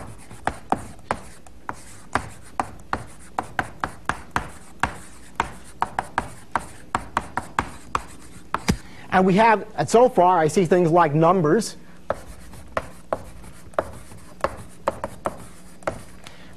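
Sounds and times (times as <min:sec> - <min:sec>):
chalk writing on a blackboard: 0:00.0 - 0:08.8, 0:12.1 - 0:16.2
speech: 0:09.2 - 0:11.8.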